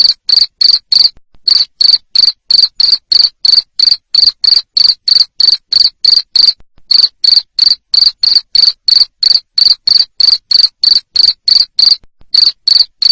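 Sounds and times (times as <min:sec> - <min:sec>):
cricket chirping: 0:00.0 - 0:13.1.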